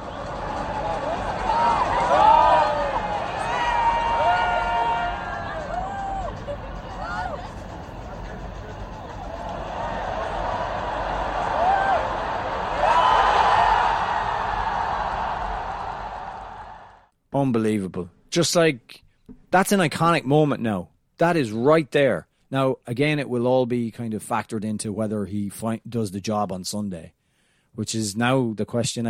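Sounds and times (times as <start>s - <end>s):
large stadium crowd roaring during football play: 0.0s - 17.1s
speech: 17.5s - 27.2s, 27.8s - 29.0s.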